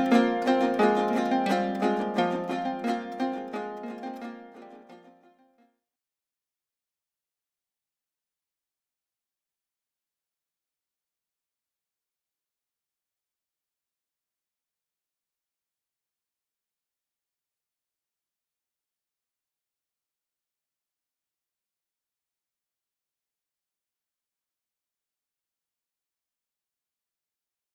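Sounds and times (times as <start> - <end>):
An Dro dance tune on a lyre: 0.0 - 5.1.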